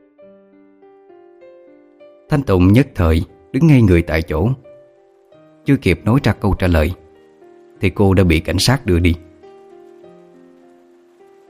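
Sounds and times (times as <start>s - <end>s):
speech: 2.3s - 4.7s, 5.6s - 7.0s, 7.8s - 9.3s
heavy rain pouring down outside: 2.3s - 11.4s.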